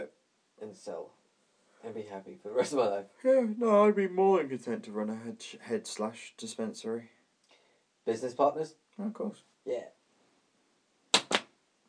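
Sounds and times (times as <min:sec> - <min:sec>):
speech: 0:00.6 - 0:01.2, 0:01.8 - 0:07.2, 0:08.0 - 0:10.0
sharp handclaps from a TV clip: 0:11.1 - 0:11.5.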